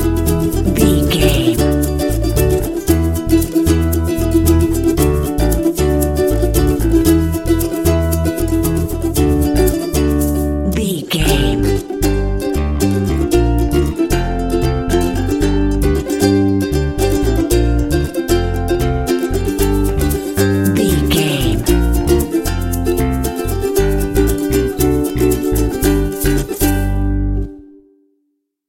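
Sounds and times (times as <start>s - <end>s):
happy ukulele background music: 0.0s - 27.9s.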